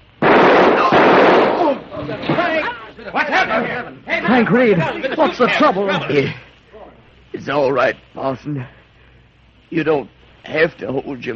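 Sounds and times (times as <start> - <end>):
gunshot fired in a confrontation: 0.2 - 2.4
speech: 3.0 - 6.4, 7.4 - 8.8, 9.7 - 11.3.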